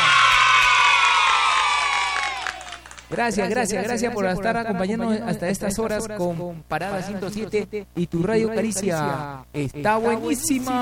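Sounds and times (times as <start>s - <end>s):
cheering: 0.0s - 3.1s
applause: 0.0s - 3.2s
speech: 3.1s - 10.8s.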